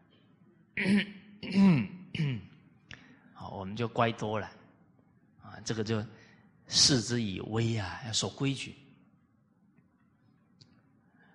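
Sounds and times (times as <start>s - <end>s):
speech: 0.8s - 2.4s, 3.7s - 4.6s, 5.6s - 8.8s
throat-clearing coughs as a warning: 0.8s - 2.6s.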